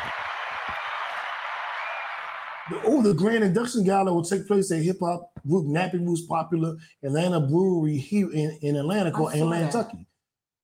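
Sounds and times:
round of applause: 0.0s - 3.1s
speech: 2.7s - 10.1s.

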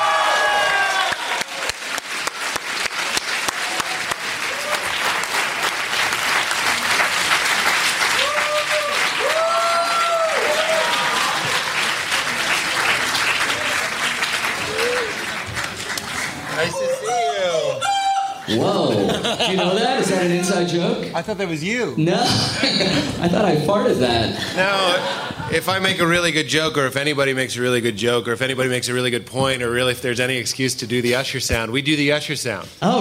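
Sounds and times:
audience applause: 0.0s - 17.8s
laughter: 16.3s - 20.7s, 22.2s - 23.3s, 24.4s - 26.2s
speech: 21.2s - 32.9s.

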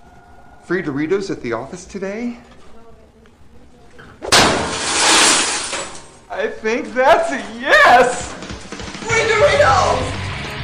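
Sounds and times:
speech: 0.7s - 2.6s, 6.4s - 8.3s, 9.0s - 10.1s
snow globe smashed through vending machine: 4.3s - 6.2s.

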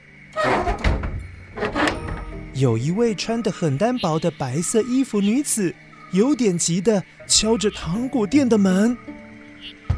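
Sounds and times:
shop window being closed: 0.4s - 2.4s
speech: 2.6s - 9.8s.

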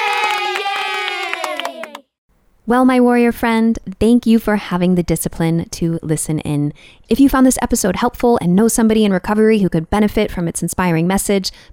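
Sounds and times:
crowd cheering and whooping: 0.0s - 2.0s
applause: 0.0s - 2.1s
speech: 2.7s - 11.7s.

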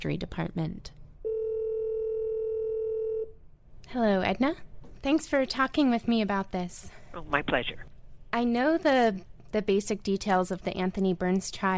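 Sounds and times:
speech: 0.0s - 1.0s, 3.9s - 11.7s
phone line ringing on an outgoing call: 1.2s - 3.4s.

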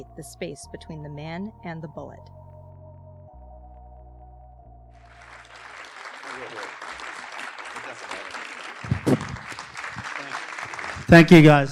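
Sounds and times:
speech: 0.0s - 2.4s, 11.1s - 11.7s
audience applause: 5.1s - 11.7s.

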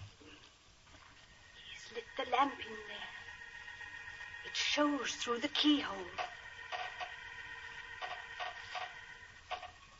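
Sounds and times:
speech: 2.2s - 3.1s, 4.5s - 6.3s
nails squeaking as box lid is removed: 6.0s - 9.9s.

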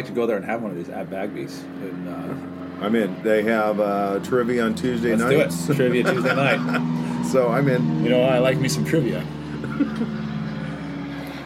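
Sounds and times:
speech: 0.0s - 10.2s
airplane flying overhead: 0.0s - 11.4s
laughter: 5.2s - 7.2s, 9.5s - 11.0s.

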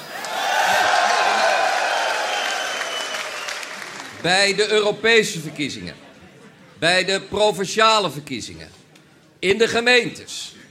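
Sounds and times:
cheering: 0.0s - 4.2s
large crowd applause: 0.0s - 4.3s
speech: 4.2s - 6.0s, 6.8s - 8.8s, 9.4s - 10.6s.

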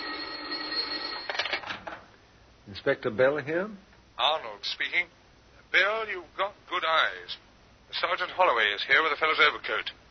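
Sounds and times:
desk telephone ringing with a jangling bell: 0.0s - 1.7s
speech: 2.8s - 10.0s.

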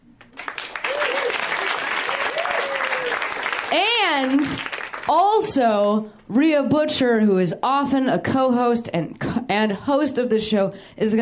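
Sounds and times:
audience clapping: 0.2s - 5.1s
whoops and cheers: 0.7s - 3.4s
speech: 3.7s - 11.2s.

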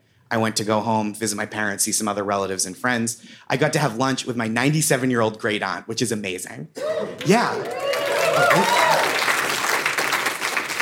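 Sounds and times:
speech: 0.3s - 7.8s, 8.4s - 9.1s
applause: 7.2s - 10.8s.

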